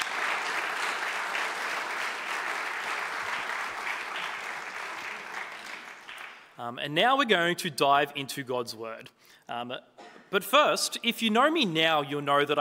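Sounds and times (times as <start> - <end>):
audience applause: 0.0 - 6.6
speech: 6.6 - 12.5.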